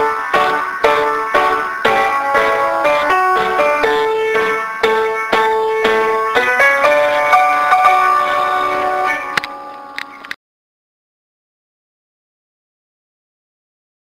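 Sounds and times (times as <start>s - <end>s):
school music: 0.0s - 10.3s.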